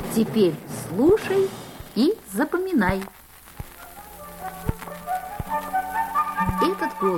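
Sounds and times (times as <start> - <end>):
speech: 0.2 - 3.2, 6.7 - 7.1
flute playing bird-like melody: 4.3 - 7.1.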